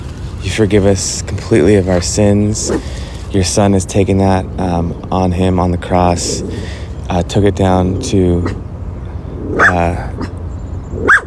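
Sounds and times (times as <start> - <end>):
speech: 0.5 - 8.6, 9.5 - 10.2
pet dogs barking indoors: 1.8 - 3.0, 6.0 - 7.0, 7.6 - 11.2.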